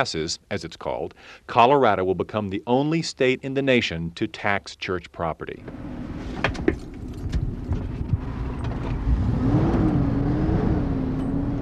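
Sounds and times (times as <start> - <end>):
speech: 0.0 - 6.8
customized GMC motorhome engine drone: 5.6 - 11.6.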